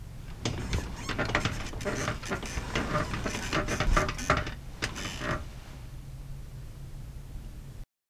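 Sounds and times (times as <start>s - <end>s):
bed squeaking: 0.3s - 5.6s.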